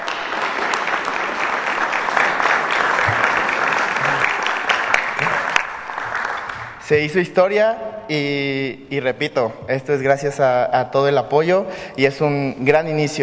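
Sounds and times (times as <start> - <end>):
applause: 0.0 - 6.8
speech: 6.9 - 13.2.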